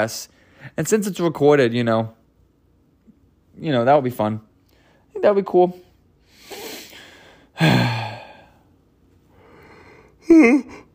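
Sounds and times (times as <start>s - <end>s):
speech: 0.0s - 2.2s, 3.6s - 4.5s, 5.2s - 5.9s, 7.6s - 8.0s
person yawning: 7.6s - 8.6s, 10.2s - 10.9s.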